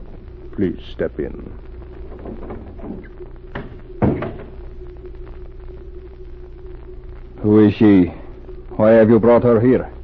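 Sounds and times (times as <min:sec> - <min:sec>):
speech: 0:00.6 - 0:03.7, 0:07.4 - 0:08.2, 0:08.8 - 0:10.0
door opening and closing: 0:02.0 - 0:04.6.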